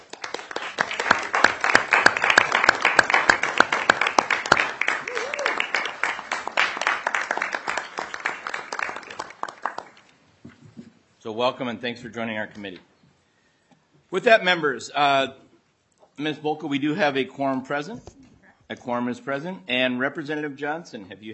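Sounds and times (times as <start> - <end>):
audience round of applause: 0.0 - 10.1
speech: 11.3 - 12.9, 14.1 - 15.4, 16.2 - 21.3.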